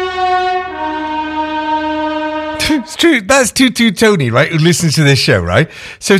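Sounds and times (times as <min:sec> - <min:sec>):
train horn tooting: 0:00.0 - 0:03.1
speech: 0:02.7 - 0:06.1.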